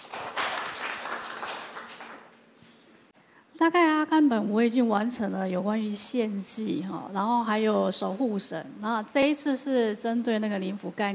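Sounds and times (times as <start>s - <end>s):
audience applause: 0.0s - 2.4s
speech: 3.6s - 11.1s.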